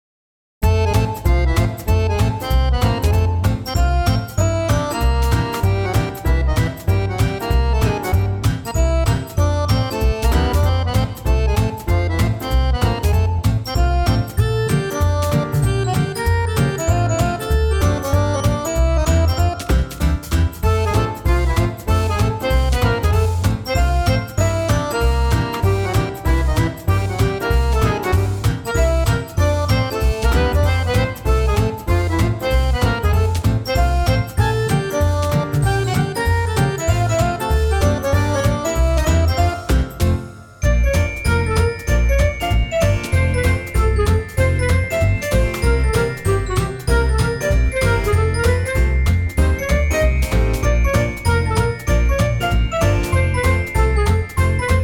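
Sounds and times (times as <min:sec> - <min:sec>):
music: 0:00.6 - 0:54.8.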